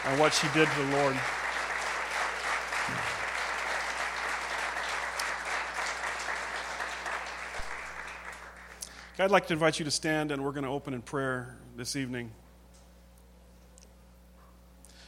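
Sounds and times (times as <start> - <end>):
speech: 0.0 - 1.4, 9.2 - 12.4
crowd applauding: 0.0 - 9.2.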